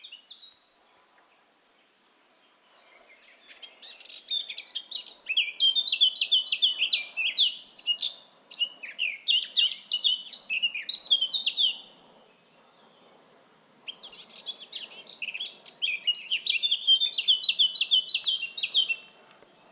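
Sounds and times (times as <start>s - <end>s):
Sylvia atricapilla singing: 3.5s - 11.8s, 13.9s - 19.0s.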